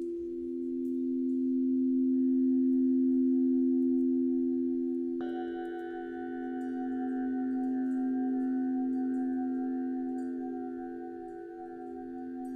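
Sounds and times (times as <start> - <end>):
sound bath of sustained humming tones: 0.9 - 12.5.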